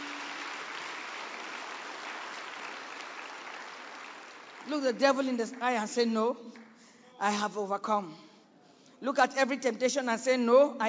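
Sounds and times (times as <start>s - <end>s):
audience clapping: 0.0s - 5.3s
speech: 4.6s - 6.6s, 7.2s - 8.3s, 9.0s - 10.8s.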